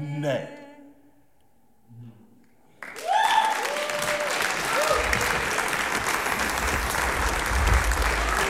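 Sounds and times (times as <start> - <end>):
concert audience applause: 2.8 - 8.4.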